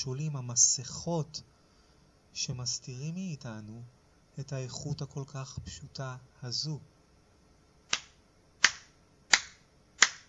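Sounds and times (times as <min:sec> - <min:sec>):
speech: 0:00.0 - 0:01.5, 0:02.4 - 0:06.9
crisp sharp hand claps: 0:07.9 - 0:10.2.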